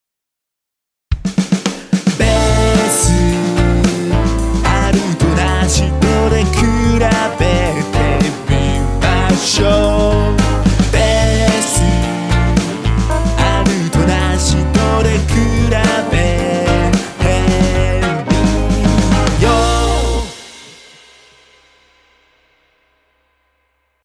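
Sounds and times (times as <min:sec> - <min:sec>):
bass: 0:02.2 - 0:20.4.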